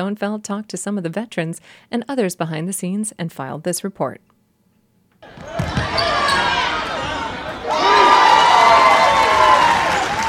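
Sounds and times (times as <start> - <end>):
speech: 0.0 - 4.3
basketball bounces: 5.2 - 6.2
basketball crowd cheering and shouting in a gym: 5.2 - 10.2
excited voices: 5.4 - 10.2.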